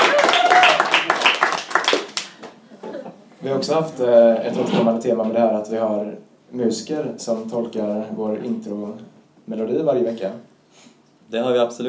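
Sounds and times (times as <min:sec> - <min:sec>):
brief clapping applause: 0:00.0 - 0:02.6
speech: 0:03.4 - 0:11.8.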